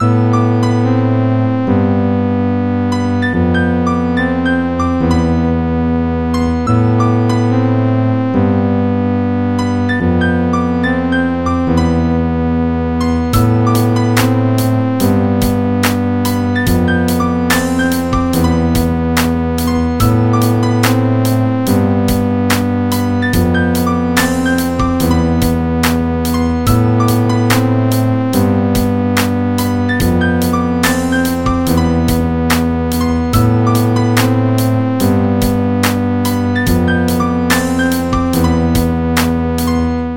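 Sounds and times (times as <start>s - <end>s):
instrumental music: 0.0s - 40.1s.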